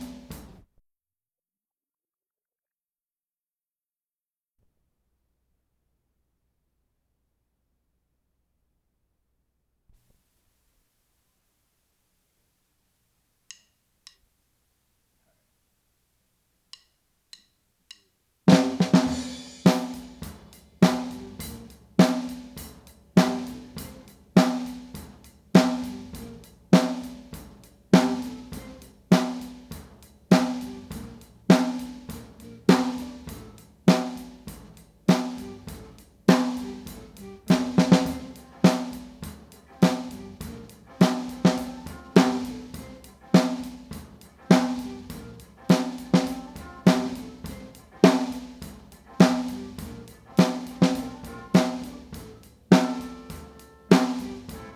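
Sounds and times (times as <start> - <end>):
snare drum: 0.0 - 0.6, 18.5 - 54.7.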